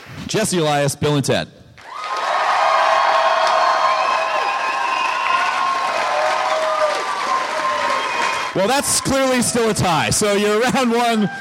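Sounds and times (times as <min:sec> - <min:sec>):
speech: 0:00.1 - 0:01.6, 0:08.6 - 0:11.4
audience applause: 0:01.8 - 0:10.1
audience cheering: 0:01.8 - 0:11.4.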